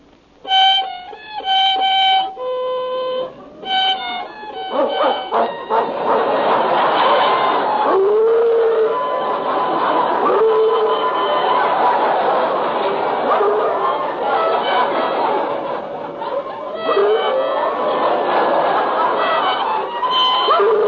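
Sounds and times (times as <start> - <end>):
violin playing in a hotel: 0.4 - 20.8
laughter: 3.3 - 20.8
dog howling along with violin: 4.7 - 12.4, 13.2 - 14.1, 16.8 - 17.7, 20.3 - 20.8.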